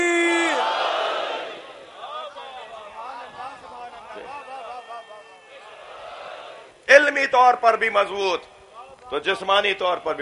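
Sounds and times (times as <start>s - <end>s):
crowd answering a chant call with a unified shout: 0.0s - 6.8s
speech: 7.2s - 8.5s, 9.1s - 10.1s.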